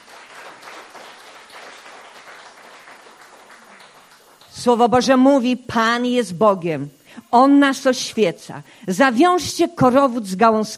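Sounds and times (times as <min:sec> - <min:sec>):
applause: 0:00.0 - 0:04.7
speech: 0:04.6 - 0:10.7.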